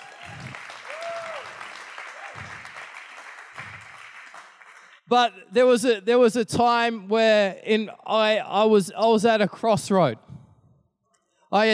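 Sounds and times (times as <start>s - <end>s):
audience clapping: 0.0s - 5.1s
speech: 5.1s - 10.3s, 11.5s - 11.7s.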